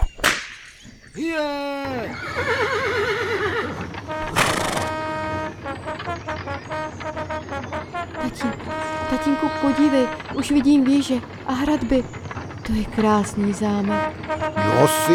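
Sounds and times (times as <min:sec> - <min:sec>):
whip crack: 0:00.1 - 0:00.8
horses pulling a carriage: 0:00.8 - 0:15.1
speech: 0:01.2 - 0:02.8, 0:08.1 - 0:15.1.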